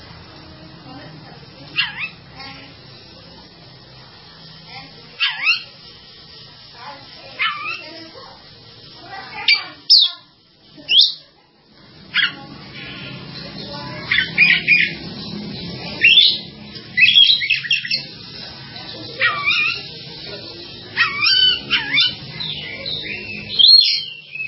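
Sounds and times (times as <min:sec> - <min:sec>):
bird song: 0:05.2 - 0:05.7, 0:09.4 - 0:10.3, 0:10.9 - 0:11.2, 0:12.2 - 0:18.2, 0:19.2 - 0:20.0, 0:20.7 - 0:24.4.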